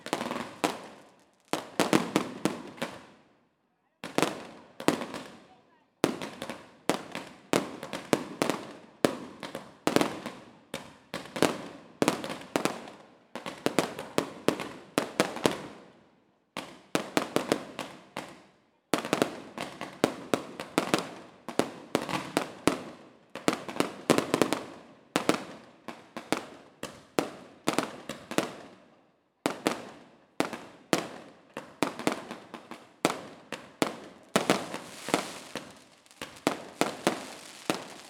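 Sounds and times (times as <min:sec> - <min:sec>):
fireworks: 0:00.0 - 0:03.2, 0:04.0 - 0:05.4, 0:06.0 - 0:15.9, 0:16.6 - 0:38.0.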